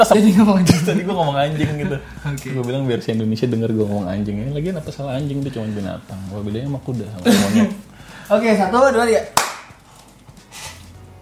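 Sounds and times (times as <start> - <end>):
speech: 0.0 - 9.4
laughter: 0.3 - 2.8, 7.2 - 7.8
hand clapping: 9.3 - 10.0.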